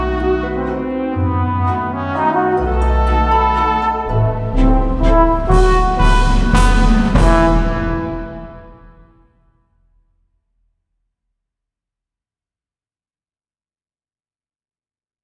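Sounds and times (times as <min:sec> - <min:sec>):
dark waltz music: 0:00.0 - 0:09.1.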